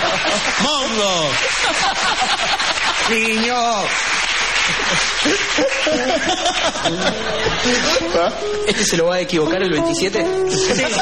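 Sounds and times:
laughter: 0:00.0 - 0:00.6, 0:01.4 - 0:03.3, 0:04.7 - 0:08.1, 0:10.5 - 0:11.0
audience applause: 0:00.0 - 0:08.2
speech: 0:00.6 - 0:11.0.

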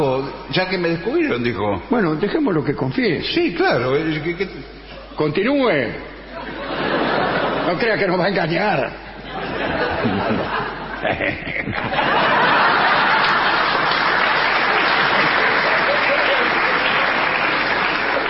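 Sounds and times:
speech: 0:00.0 - 0:06.6, 0:07.7 - 0:09.0, 0:10.0 - 0:12.2
laughter: 0:06.3 - 0:08.3, 0:09.1 - 0:18.2
audience applause: 0:11.8 - 0:18.2.

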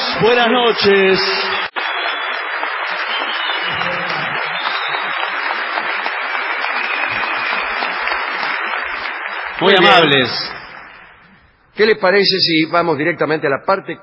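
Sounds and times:
audience ovation: 0:00.0 - 0:11.4
speech: 0:00.2 - 0:01.5, 0:09.6 - 0:10.6, 0:11.8 - 0:14.0.

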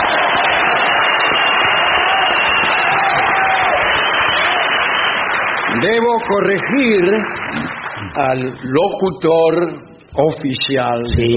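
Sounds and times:
large crowd roaring and cheering: 0:00.0 - 0:08.8
speech: 0:05.8 - 0:11.3.

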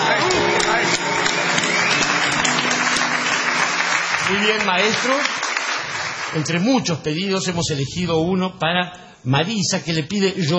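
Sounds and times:
audience applause: 0:00.0 - 0:06.7
speech: 0:04.3 - 0:05.4, 0:06.3 - 0:10.5.

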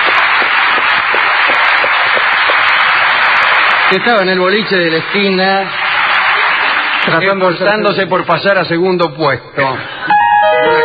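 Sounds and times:
applause for the pianist: 0:00.0 - 0:08.3
speech: 0:03.9 - 0:05.8, 0:07.1 - 0:09.9.

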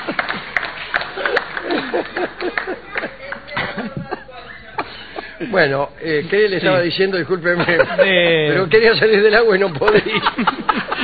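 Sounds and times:
small audience clapping: 0:00.0 - 0:04.0
people laughing in the room: 0:00.0 - 0:05.8, 0:06.4 - 0:11.0
people chattering in the room: 0:01.2 - 0:10.5
speech: 0:05.6 - 0:10.8.

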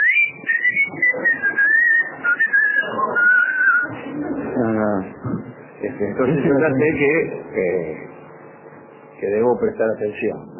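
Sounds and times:
long wavering whistle: 0:00.0 - 0:03.9
low buzzy tone: 0:00.0 - 0:10.5
speech: 0:06.0 - 0:08.1, 0:09.2 - 0:10.5.

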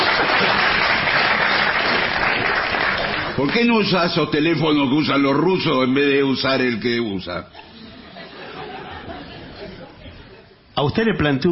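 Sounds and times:
audience applause: 0:00.0 - 0:04.1
speech: 0:03.4 - 0:07.7, 0:10.8 - 0:11.5
laughter: 0:07.5 - 0:10.7.

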